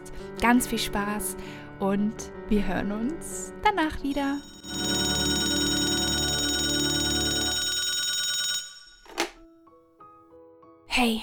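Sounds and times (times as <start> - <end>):
speech: 0.4 - 5.0, 11.0 - 11.2
old-style telephone bell ringing: 4.1 - 9.3
telephone receiver clunk: 9.0 - 9.4.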